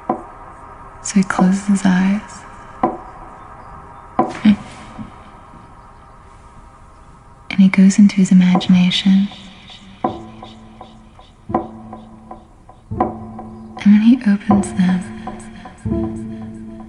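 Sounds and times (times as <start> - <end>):
sharp evenly spaced ticking clicks: 0.0 - 16.8
speech: 1.0 - 2.5, 7.7 - 9.5
rapid knocking taps: 2.8 - 3.1, 4.2 - 5.1, 8.5 - 16.8.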